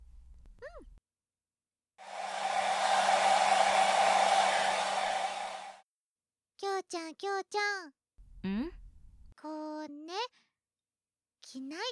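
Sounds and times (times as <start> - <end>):
hair dryer drying hair: 2.0 - 5.8
speech: 6.9 - 8.7, 9.4 - 10.4, 11.5 - 11.9.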